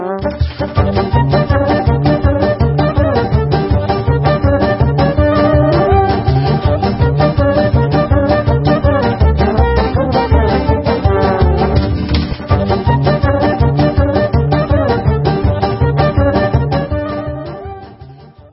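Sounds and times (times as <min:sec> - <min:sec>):
instrumental Israeli dance music: 0:00.2 - 0:18.4.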